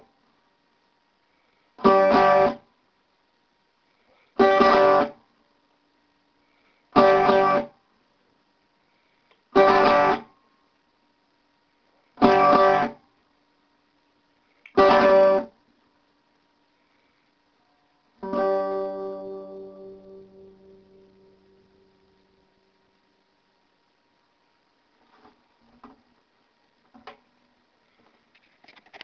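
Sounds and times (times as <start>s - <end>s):
strings strummed: 1.8s - 2.6s, 4.4s - 5.2s, 7.0s - 7.7s, 9.6s - 10.3s, 14.8s - 15.5s, 18.2s - 21.9s.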